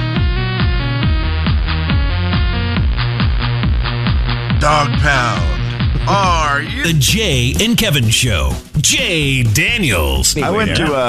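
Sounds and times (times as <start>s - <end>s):
new song being played on radio: 0.0s - 11.0s
speech: 4.7s - 11.0s.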